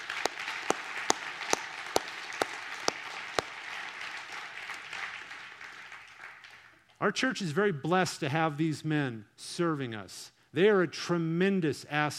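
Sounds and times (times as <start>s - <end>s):
audience applause: 0.0s - 6.7s
speech: 7.0s - 12.1s.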